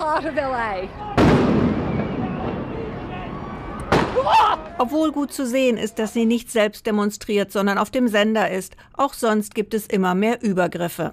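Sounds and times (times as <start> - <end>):
crowd rumble: 0.0 - 6.4
speech: 0.2 - 1.7, 4.2 - 11.1
loud bang of rubber bullet shot fired at reporter: 1.1 - 4.5
sudden crack of projectile shot: 1.1 - 4.8.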